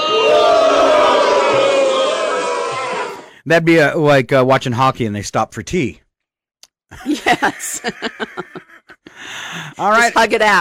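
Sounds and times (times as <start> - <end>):
crowd cheering: 0.0 - 3.4
speech: 3.4 - 6.0, 6.9 - 8.6, 9.2 - 10.5
laughter: 6.9 - 9.6.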